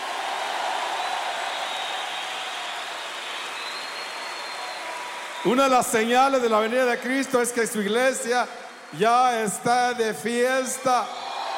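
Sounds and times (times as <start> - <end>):
audience applause: 0.0 - 6.4
speech: 5.4 - 11.2.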